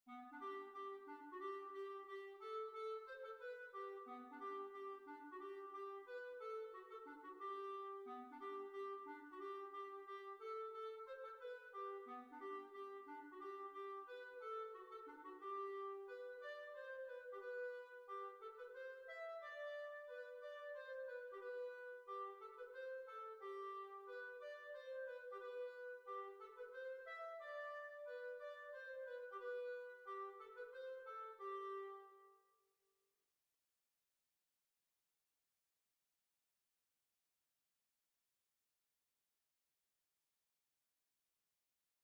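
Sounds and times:
waltz music: 0.1s - 32.0s.

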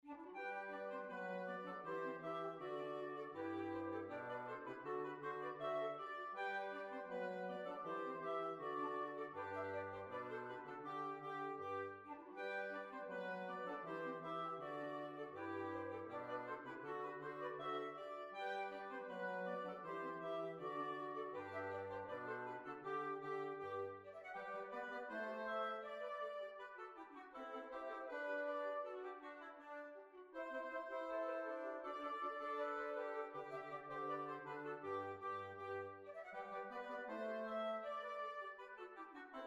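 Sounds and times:
hornpipe tune: 0.0s - 39.4s.

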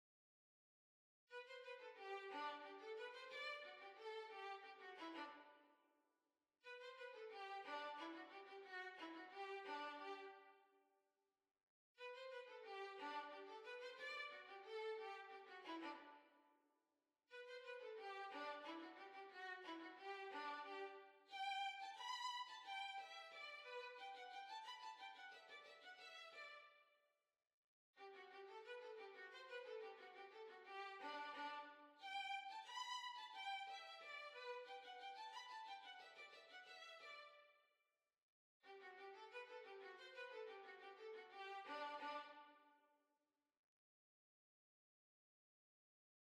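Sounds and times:
violin: 1.3s - 5.6s, 6.6s - 10.5s, 12.0s - 16.3s, 17.3s - 26.8s, 28.0s - 37.5s, 38.6s - 42.6s.

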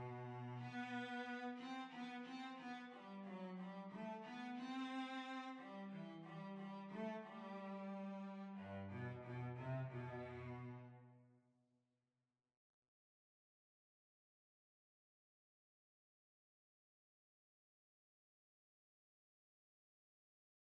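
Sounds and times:
cello playing: 0.0s - 11.0s.

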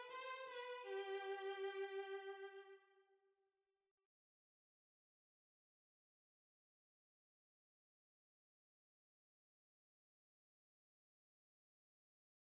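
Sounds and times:
violin: 0.0s - 2.8s.

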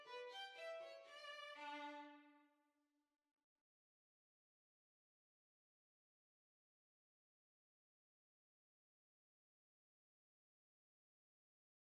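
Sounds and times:
violin: 0.0s - 2.4s.

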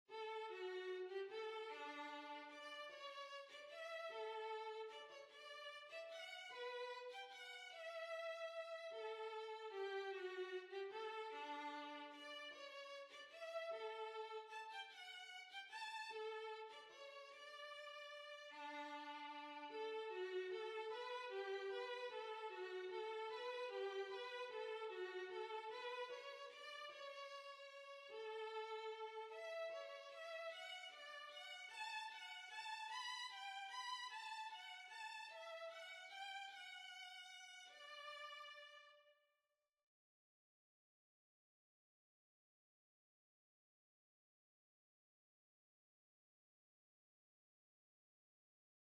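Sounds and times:
violin: 0.1s - 39.1s.

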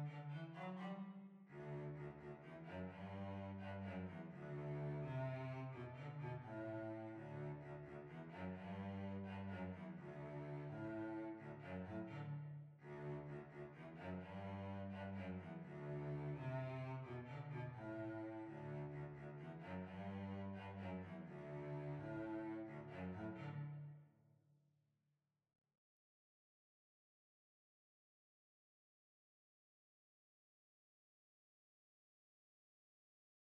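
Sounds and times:
violoncello playing: 0.0s - 23.8s.

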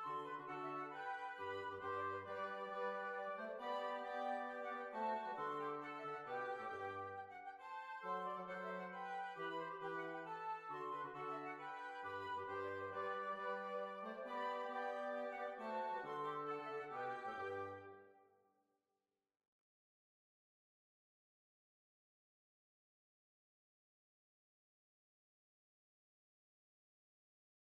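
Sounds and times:
Tyrolean waltz music: 0.0s - 18.0s.

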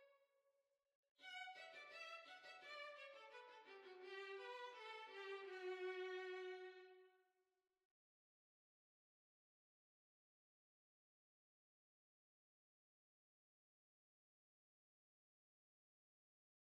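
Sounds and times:
violin: 1.2s - 7.1s.

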